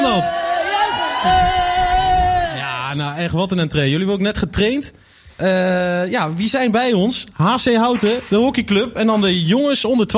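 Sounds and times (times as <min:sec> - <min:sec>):
studio audience cheering loudly: 0:00.0 - 0:02.9
speech: 0:01.2 - 0:01.5, 0:03.0 - 0:10.1.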